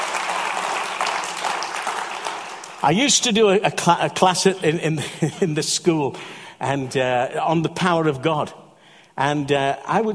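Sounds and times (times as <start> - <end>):
audience applause: 0.0 - 3.2
speech: 2.8 - 8.6, 9.2 - 10.1.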